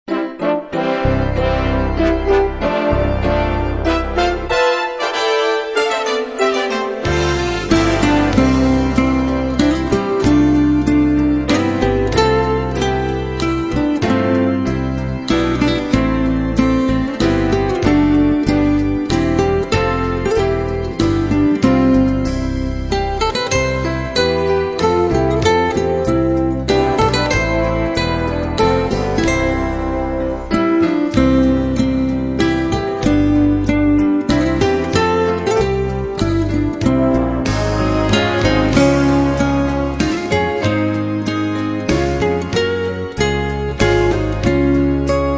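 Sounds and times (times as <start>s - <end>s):
instrumental hymns: 0.1s - 45.3s.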